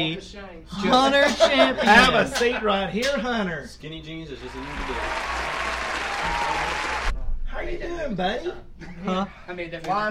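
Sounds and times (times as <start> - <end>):
speech: 0.0 - 5.4, 7.6 - 10.1
applause sound effect played: 4.4 - 7.1.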